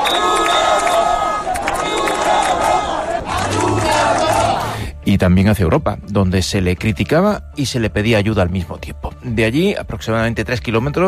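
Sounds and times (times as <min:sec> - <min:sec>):
protesters chanting and shouting: 0:00.0 - 0:04.9
speech: 0:05.1 - 0:11.0.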